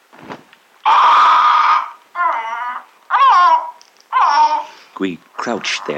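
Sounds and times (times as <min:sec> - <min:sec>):
parrot squawking after cage cover removed: 0:00.8 - 0:05.9
speech: 0:05.0 - 0:05.9.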